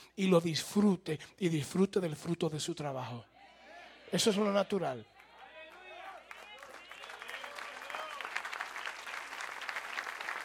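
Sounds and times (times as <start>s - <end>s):
speech: 0.2s - 3.3s, 4.1s - 5.1s
audience applause: 5.6s - 10.4s.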